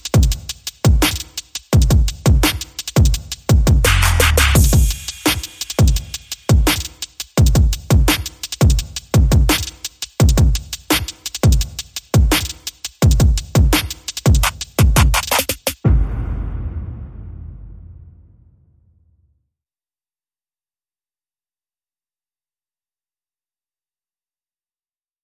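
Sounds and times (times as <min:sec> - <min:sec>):
simple drums playing: 0:00.0 - 0:18.4.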